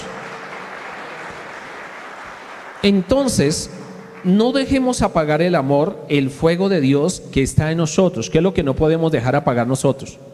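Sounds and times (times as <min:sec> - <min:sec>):
audience applause: 0:00.0 - 0:04.4
speech: 0:02.8 - 0:10.3.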